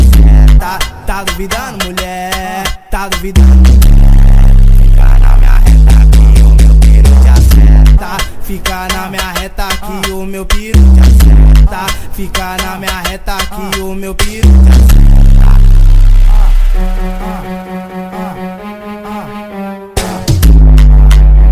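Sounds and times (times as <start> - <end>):
deep bass: 0.0 - 0.9, 3.4 - 8.1, 10.6 - 11.8, 14.2 - 18.1, 20.0 - 21.4.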